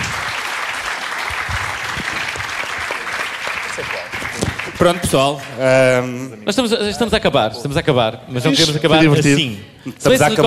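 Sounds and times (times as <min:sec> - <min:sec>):
audience applause: 0:00.0 - 0:05.8
speech: 0:04.8 - 0:10.4.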